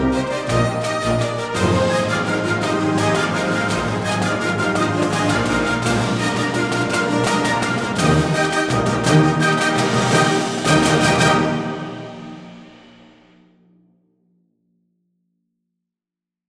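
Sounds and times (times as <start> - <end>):
fanfare: 0.0 - 13.0.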